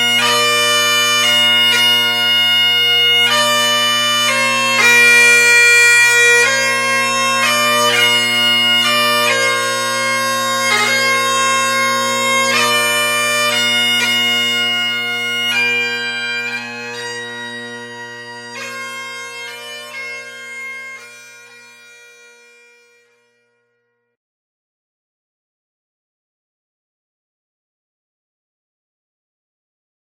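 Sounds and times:
bagpipes playing a slow air for memorials: 0:00.0 - 0:23.8.

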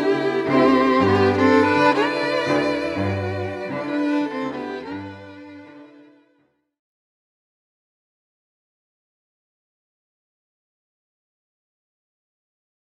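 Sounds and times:
string quartet: 0:00.0 - 0:06.4.

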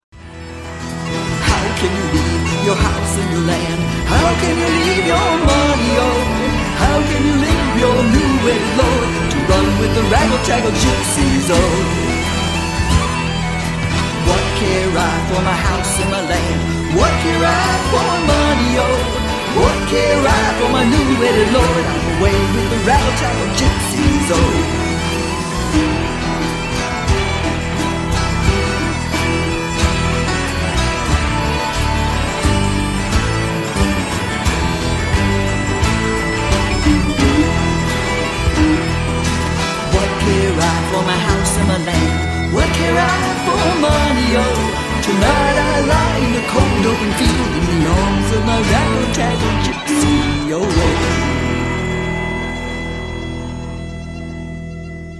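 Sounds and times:
bagpipes: 0:00.2 - 0:55.1.

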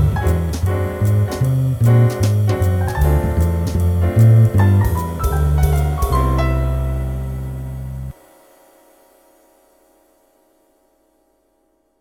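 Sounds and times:
jazz trio playing: 0:00.0 - 0:08.2.

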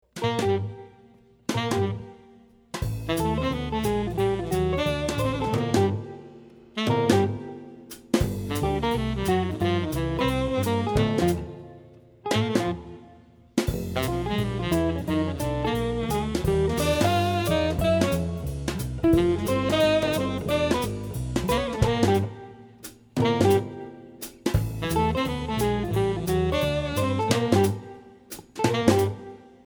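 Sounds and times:
swing music: 0:00.0 - 0:29.6.

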